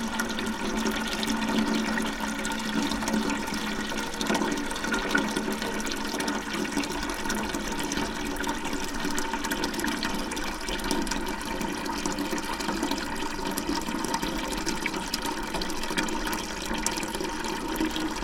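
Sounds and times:
metal watering can filling from water butt: 0:00.0 - 0:18.2.

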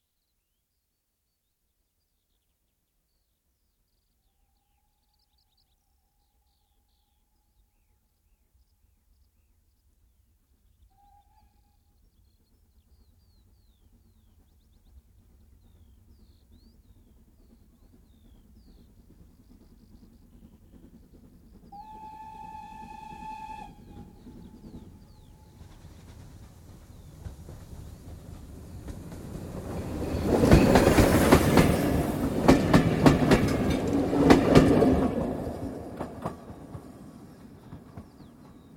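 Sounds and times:
steam train coasting past at medium speed: 0:10.6 - 0:38.7
steam train whistle: 0:10.9 - 0:11.9, 0:21.7 - 0:25.8.

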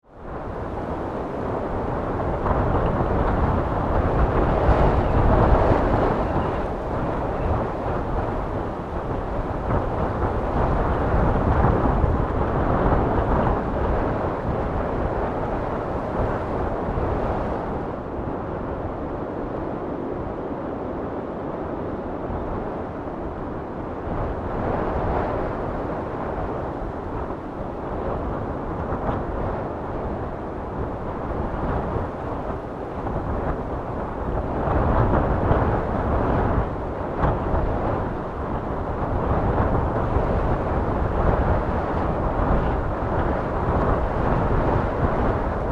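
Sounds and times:
heavy wind storm gusts: 0:00.0 - 0:45.6.

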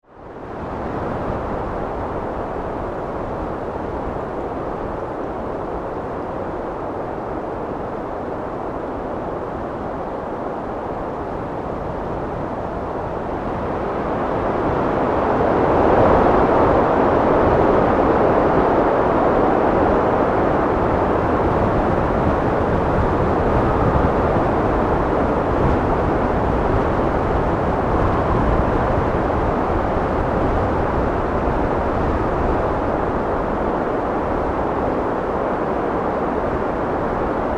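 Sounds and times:
heavy wind storm gusts: 0:00.0 - 0:37.5.

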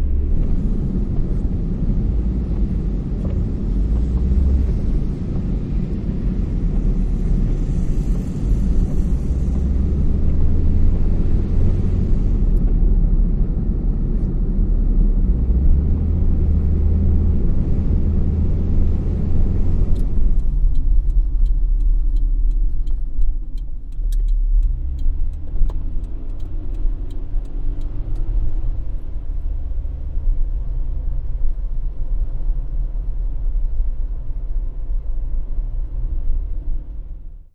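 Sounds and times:
car ride interior: 0:00.0 - 0:37.5.

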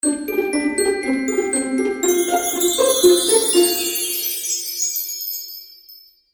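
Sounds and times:
magical cartoon music finale: 0:00.0 - 0:05.6.

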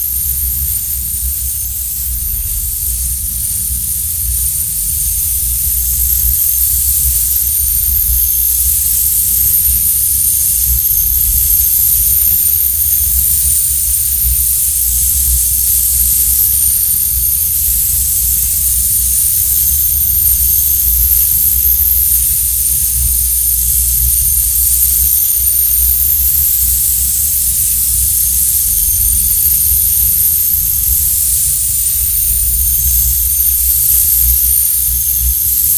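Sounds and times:
complex magnetic sci-fi electric discharge: 0:00.0 - 0:35.7.

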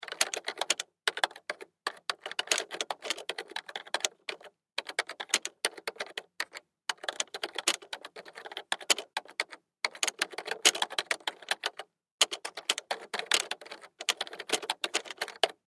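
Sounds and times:
computer keyboard typing: 0:00.0 - 0:15.6.

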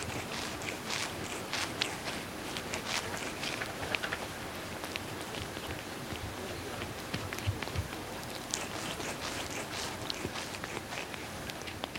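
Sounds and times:
cat grooming itself with wet licking: 0:00.0 - 0:11.9.

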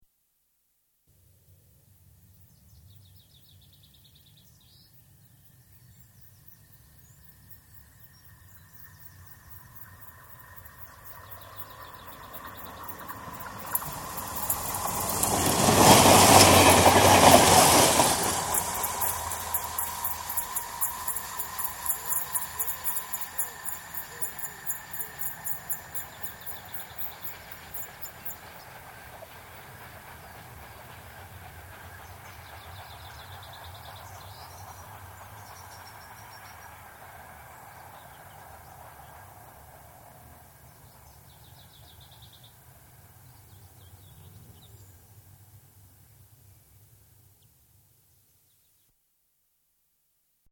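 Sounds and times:
rail noise: 0:06.9 - 0:46.5
single diesel locomotive passing: 0:07.0 - 0:45.8.

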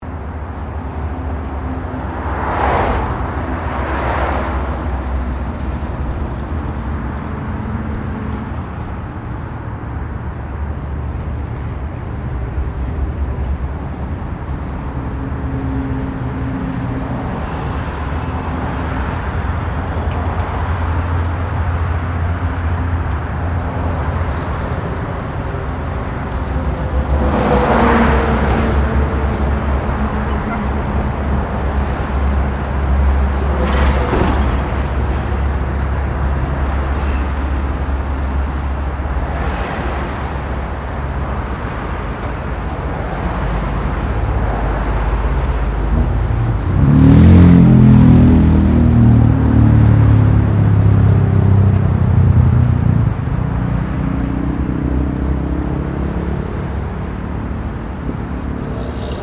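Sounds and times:
cars passing by on a freeway: 0:00.0 - 0:59.2.

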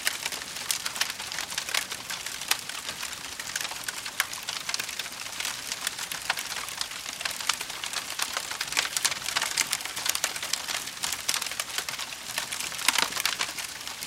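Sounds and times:
campfire wood crackling: 0:00.0 - 0:14.0.

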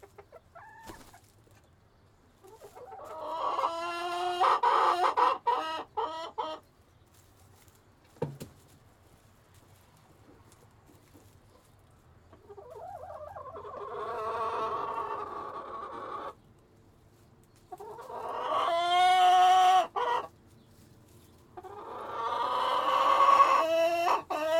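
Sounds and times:
chicken squawking: 0:00.1 - 0:01.2, 0:02.5 - 0:06.6, 0:12.5 - 0:16.4, 0:17.8 - 0:20.3, 0:21.6 - 0:24.5.

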